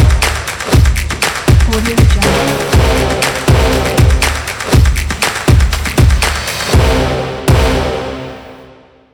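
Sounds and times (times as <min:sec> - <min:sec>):
drums: 0:00.0 - 0:08.0
brass: 0:02.0 - 0:05.3, 0:06.5 - 0:09.1.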